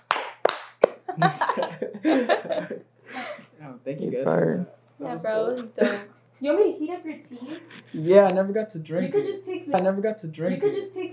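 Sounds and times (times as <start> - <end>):
group clapping together: 0.0 - 1.3
laughter: 1.1 - 3.4
speech: 1.2 - 11.1.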